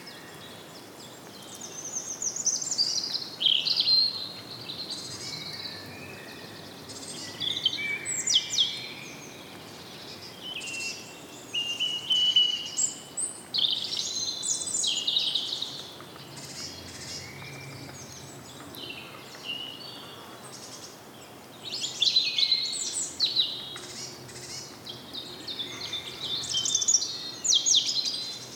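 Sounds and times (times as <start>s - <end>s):
forest ambience: 0.0s - 28.5s.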